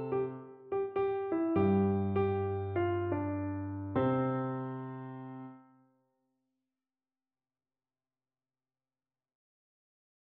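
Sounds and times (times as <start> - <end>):
electric piano: 0.0 - 5.7.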